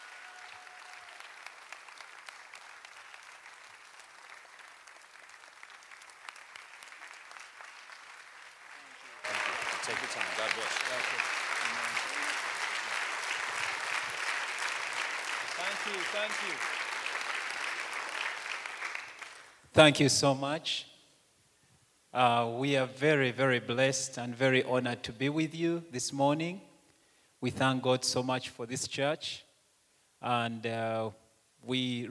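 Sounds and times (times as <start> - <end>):
church congregation applauding: 0.0 - 19.6
speech: 9.9 - 11.4, 15.9 - 16.8, 19.8 - 20.9, 22.1 - 26.7, 27.4 - 29.5, 30.2 - 32.0.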